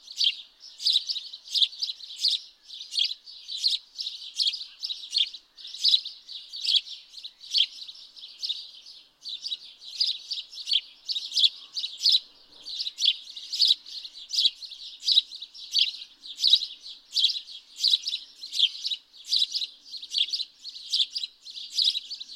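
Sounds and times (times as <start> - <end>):
House sparrow chirping: 0.0 - 22.3.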